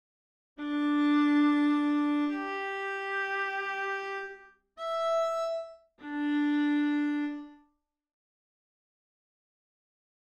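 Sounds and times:
viola: 0.6s - 7.6s.

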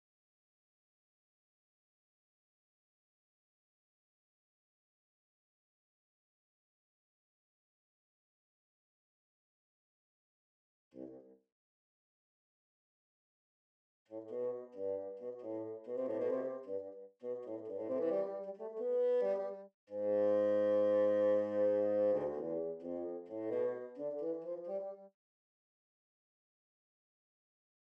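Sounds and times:
bassoon: 14.1s - 25.1s.

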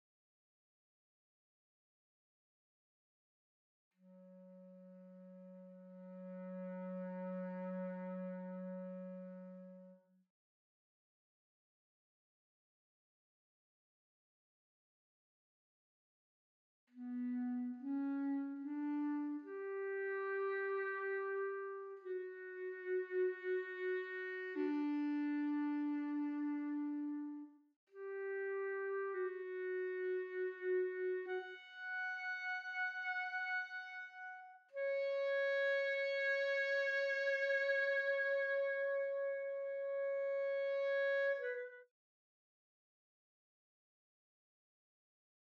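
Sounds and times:
clarinet: 4.0s - 10.1s, 16.9s - 41.9s.

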